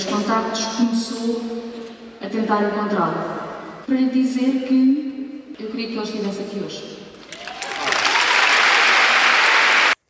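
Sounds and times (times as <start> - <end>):
speech: 0.3 - 1.6, 2.3 - 7.0
audience applause: 7.3 - 10.0.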